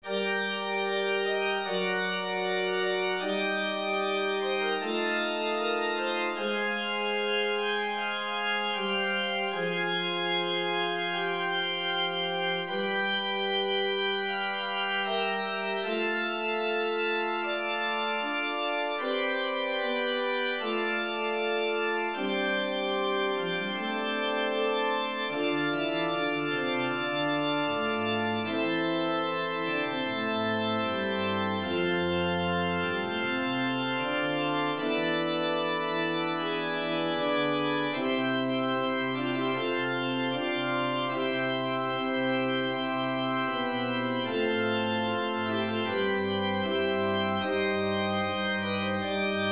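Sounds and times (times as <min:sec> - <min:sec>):
organ study: 0:00.0 - 0:49.4.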